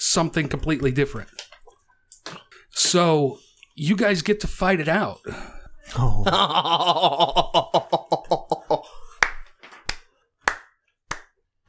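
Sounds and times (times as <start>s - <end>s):
speech: 0.1s - 1.4s, 2.9s - 7.9s
laughing: 5.9s - 9.4s
person clapping hands: 8.5s - 11.6s.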